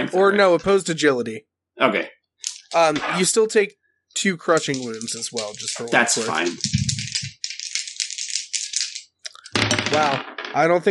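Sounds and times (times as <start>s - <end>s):
speech: 0.0s - 6.8s, 9.9s - 10.8s
dice being rolled: 2.4s - 3.2s, 4.5s - 10.2s.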